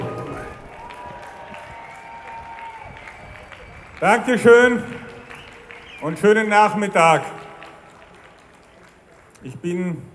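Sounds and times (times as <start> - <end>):
scattered cheers: 0.0 - 6.3
demonstration crowd applauding loudly: 0.0 - 9.7
speech: 4.0 - 5.1, 6.0 - 7.4, 9.4 - 10.1.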